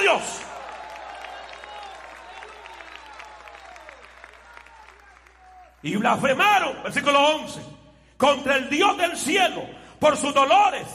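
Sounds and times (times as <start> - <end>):
audience applause: 0.0 - 5.9
speech: 0.2 - 0.5, 5.8 - 10.9.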